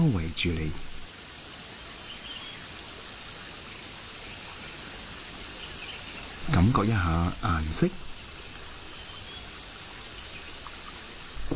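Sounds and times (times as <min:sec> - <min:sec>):
speech: 0:00.0 - 0:00.9, 0:06.5 - 0:08.1
water flowing in a natural stream: 0:00.0 - 0:11.5.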